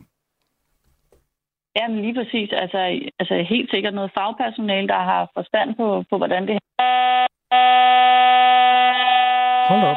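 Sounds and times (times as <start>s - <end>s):
speech: 1.8s - 8.9s
harsh electronic buzzing tone of a failing telephone line: 6.8s - 9.9s.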